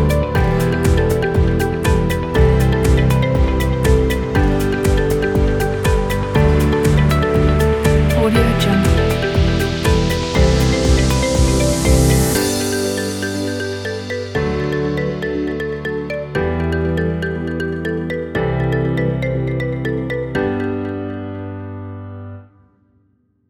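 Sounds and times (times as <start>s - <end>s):
upbeat uplifting corporate music: 0.0s - 21.4s.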